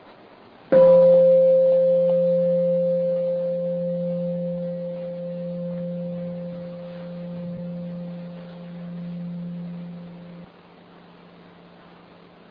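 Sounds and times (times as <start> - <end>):
meditation bell humming: 0.7 - 10.5.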